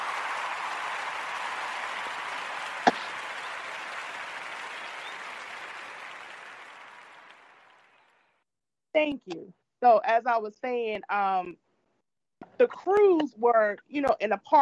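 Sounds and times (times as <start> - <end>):
crowd applause: 0.0 - 8.2
speech: 9.0 - 11.6, 12.6 - 14.5.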